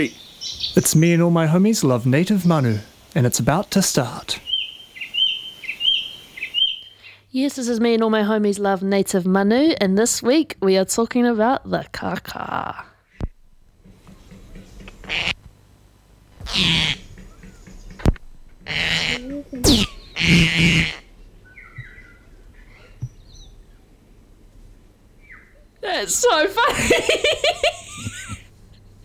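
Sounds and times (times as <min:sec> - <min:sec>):
speech: 0:00.0 - 0:04.5, 0:07.3 - 0:12.9, 0:15.1 - 0:15.3, 0:16.5 - 0:17.0, 0:18.7 - 0:21.0, 0:25.8 - 0:28.4
fart noise sound effects on the computer: 0:13.2 - 0:15.4, 0:16.4 - 0:21.1
laughter: 0:26.0 - 0:29.0.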